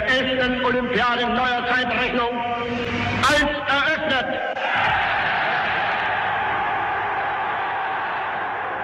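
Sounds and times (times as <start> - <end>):
speech: 0.2 - 4.6
archival stadium crowd applauding at the Berlin Olympic Stadium: 4.8 - 8.8.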